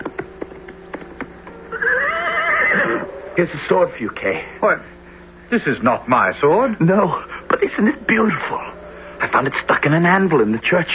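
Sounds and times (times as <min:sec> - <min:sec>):
horse galloping: 0:00.0 - 0:03.0
horse whinnying: 0:01.7 - 0:03.1
speech: 0:03.4 - 0:10.9.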